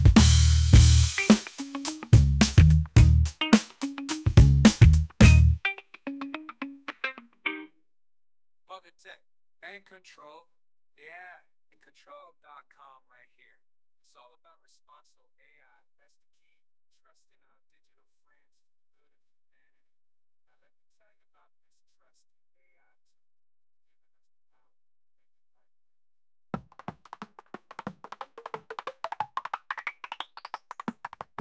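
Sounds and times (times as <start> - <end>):
groove machine beat: 0.0 - 5.6.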